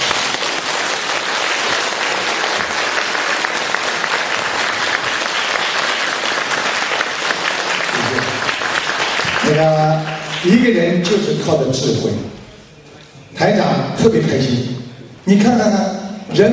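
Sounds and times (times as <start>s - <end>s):
audience clapping after a speech: 0.0s - 11.5s
speech: 9.5s - 12.4s, 13.4s - 16.5s.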